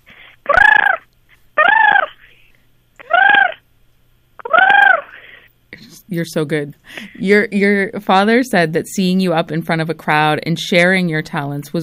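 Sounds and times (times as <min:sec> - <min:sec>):
person imitating a sandhill crane call: 0:00.2 - 0:02.4, 0:03.0 - 0:03.6, 0:04.4 - 0:05.4
speech: 0:06.1 - 0:11.8.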